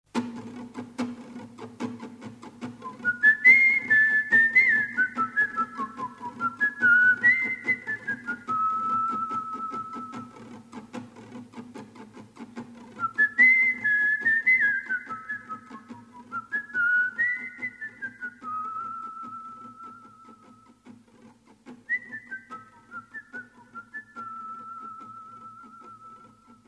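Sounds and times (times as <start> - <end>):
soldier whistling in the distance: 2.8 - 10.4, 13.0 - 20.7, 21.9 - 26.6.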